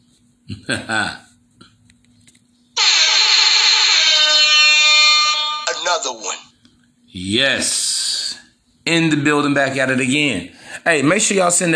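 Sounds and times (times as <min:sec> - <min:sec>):
speech: 0:00.5 - 0:01.2, 0:07.2 - 0:07.8, 0:08.9 - 0:11.7
alarm sound effect: 0:02.8 - 0:06.4.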